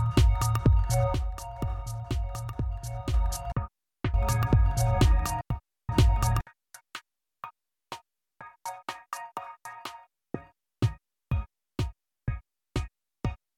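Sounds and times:
sidechained remix music: 0:00.0 - 0:06.4, 0:08.5 - 0:11.0.

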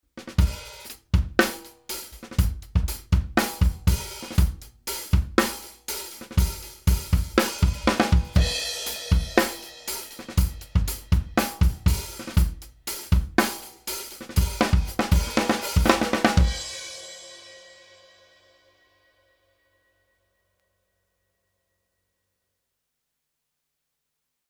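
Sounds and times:
drum bus compressed by Summit Audio TLA 100A: 0:00.2 - 0:16.9.

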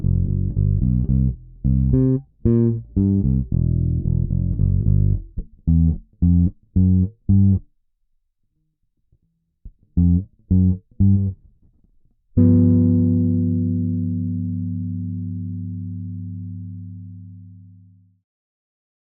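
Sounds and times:
funk guitar playing: 0:00.0 - 0:07.6, 0:10.0 - 0:11.4, 0:12.4 - 0:17.3.

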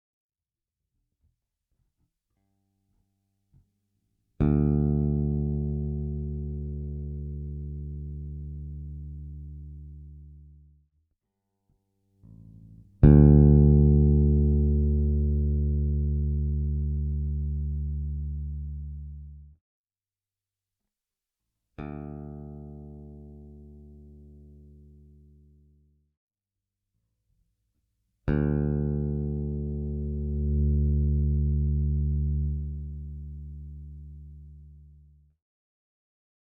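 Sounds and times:
bass guitar through Warwick Gnome i Pro V2 amp: 0:04.4 - 0:10.8, 0:12.2 - 0:19.6, 0:21.8 - 0:25.9, 0:28.3 - 0:35.4.

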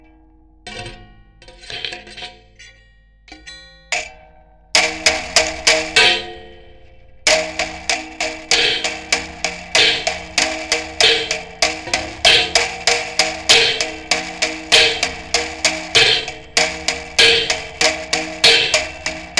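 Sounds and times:
clock spring on a rod struck in a Soundbox Mk2: 0:04.8 - 0:06.6, 0:07.3 - 0:19.3.

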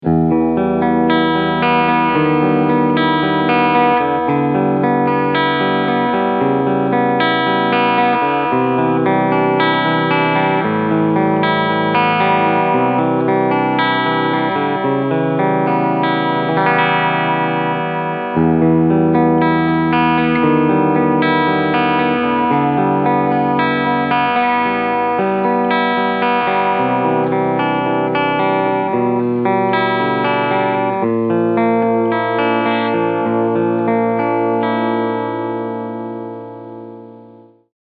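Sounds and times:
clean electric guitar on both pickups: 0:00.0 - 0:37.7.

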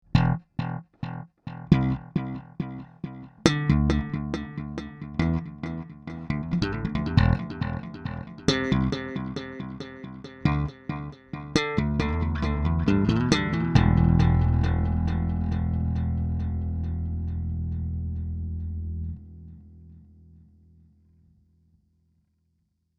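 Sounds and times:
digital bass: 0:01.6 - 0:19.5.

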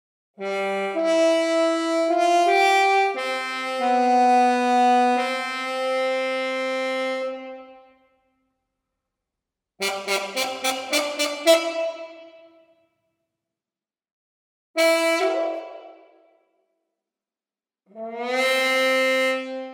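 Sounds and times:
orchestral trombone: 0:00.4 - 0:07.7, 0:09.8 - 0:12.5, 0:14.8 - 0:15.9, 0:18.0 - 0:19.7.

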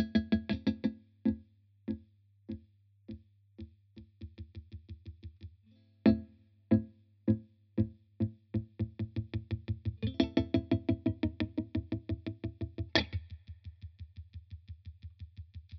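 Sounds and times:
guitar effects pedal: 0:00.0 - 0:02.0, 0:06.1 - 0:13.4.

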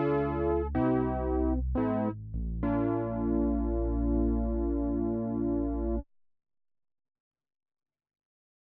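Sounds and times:
repaired Oberheim OB-Xa analog synthesizer: 0:00.0 - 0:06.0.

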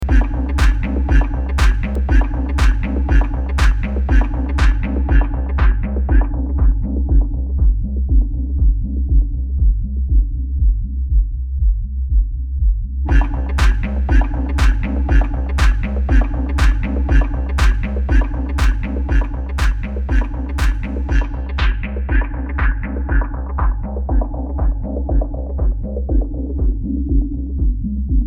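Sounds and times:
Pioneer Toraiz SP-16 low cut filter with resonance: 0:00.0 - 0:28.2.

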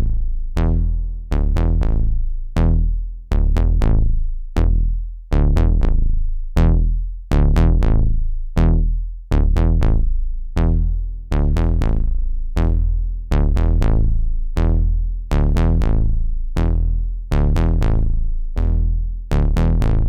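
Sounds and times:
synthesizer filter bass switching between serial and parallel routing: 0:00.0 - 0:20.0.

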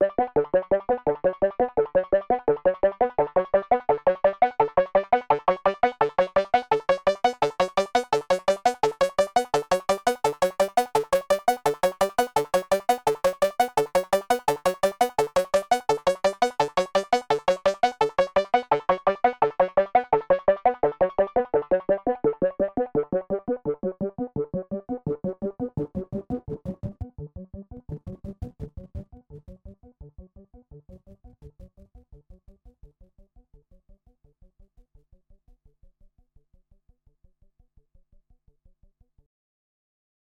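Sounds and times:
Korg MS20 synthesizer sequence with low-pass filter sweep: 0:00.0 - 0:31.7.

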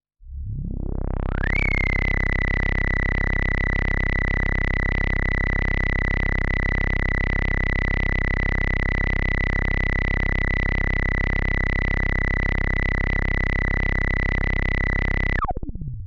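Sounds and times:
Behringer K2 resonance at 2 kHz fluttering: 0:00.3 - 0:15.4.

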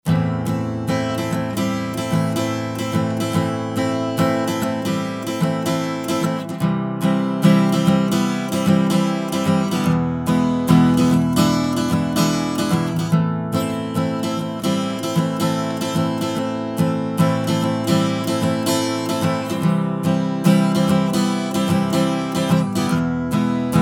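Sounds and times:
Western guitar through Tube Tech HLT 2A: 0:00.0 - 0:23.8.

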